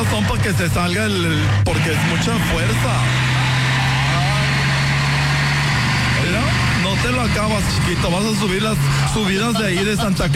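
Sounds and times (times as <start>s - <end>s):
Dina Torton truck engine idling: 0.0s - 10.3s
speech: 0.4s - 3.3s, 7.0s - 10.3s.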